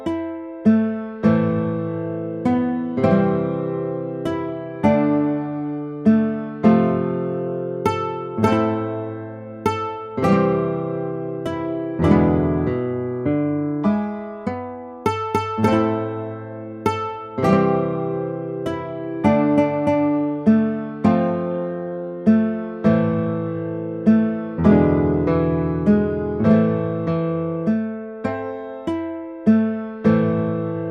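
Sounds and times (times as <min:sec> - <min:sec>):
guitar playing a folk song: 0:00.0 - 0:30.9.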